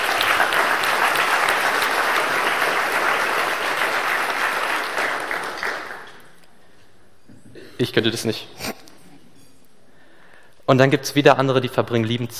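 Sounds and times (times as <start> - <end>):
audience applause: 0.0 - 6.3
speech: 7.8 - 8.7, 10.7 - 12.3.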